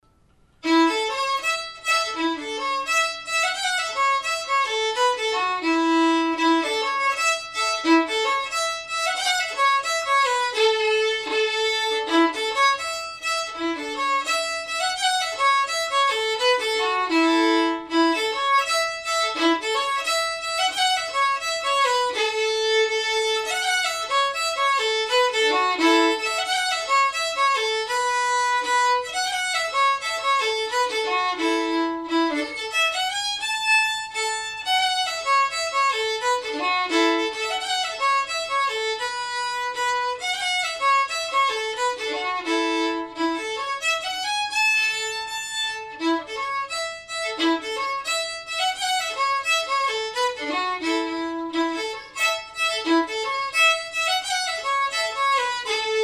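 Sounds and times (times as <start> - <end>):
slow jig on fiddle: 0.5 - 56.0.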